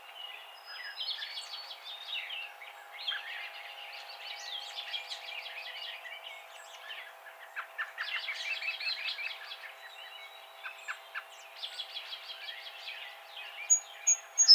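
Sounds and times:
Song sparrow song: 0.0 - 14.5.

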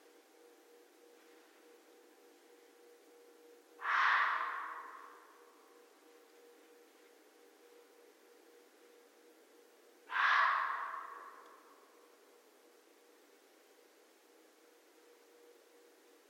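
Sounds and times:
red fox rasping barks: 3.8 - 5.3, 10.1 - 11.8.

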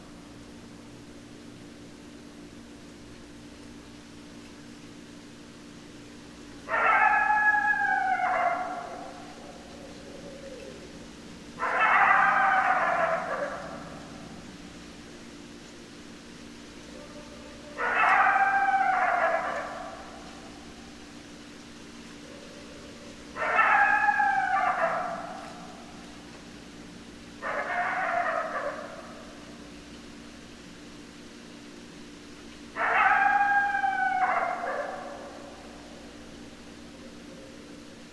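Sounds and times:
coyotes howling: 6.6 - 14.8, 16.8 - 21.3, 21.9 - 26.7, 27.4 - 29.7, 32.7 - 38.0.

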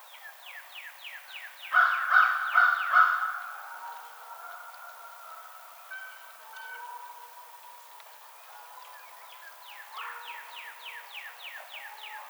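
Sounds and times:
American crow cawing: 1.8 - 3.6.

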